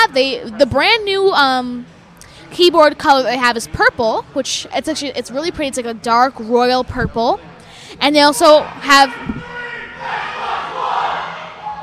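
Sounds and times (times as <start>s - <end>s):
speech: 0.1s - 10.4s
store staff cheering and chanting: 8.6s - 11.8s.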